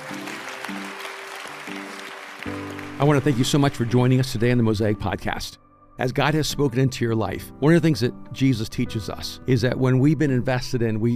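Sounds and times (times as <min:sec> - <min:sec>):
audience applause: 0:00.0 - 0:04.5
speech: 0:03.0 - 0:11.1.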